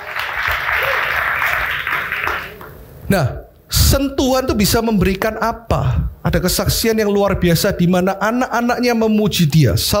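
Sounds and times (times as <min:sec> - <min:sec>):
audience applauding: 0:00.0 - 0:02.8
speech: 0:03.1 - 0:09.9.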